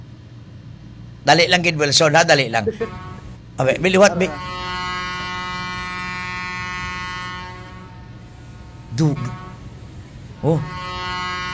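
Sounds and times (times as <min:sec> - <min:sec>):
speech: 0:01.2 - 0:04.6, 0:09.0 - 0:09.4, 0:10.4 - 0:10.8
laughter: 0:01.3 - 0:03.0, 0:03.6 - 0:04.6
ship horn: 0:02.9 - 0:11.5.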